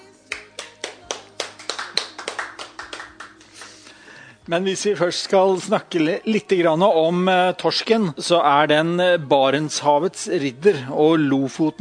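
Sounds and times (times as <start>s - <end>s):
audience applause: 0.8s - 3.8s
speech: 4.5s - 11.7s.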